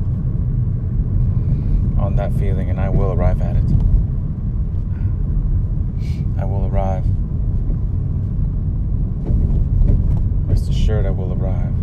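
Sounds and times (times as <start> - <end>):
car engine and road rumble: 0.0 - 11.8
speech: 2.2 - 4.0, 6.0 - 7.2, 10.6 - 11.8.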